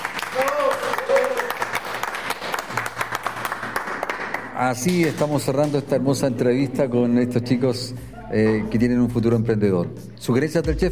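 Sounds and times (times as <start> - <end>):
applause: 0.0 - 5.8
speech: 4.6 - 10.9.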